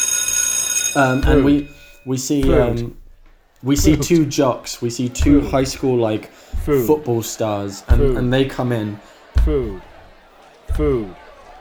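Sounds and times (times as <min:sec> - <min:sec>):
school lunch bell ringing: 0:00.0 - 0:03.0
speech: 0:00.9 - 0:03.0, 0:03.6 - 0:09.9, 0:10.7 - 0:11.2
laughter: 0:03.6 - 0:11.6.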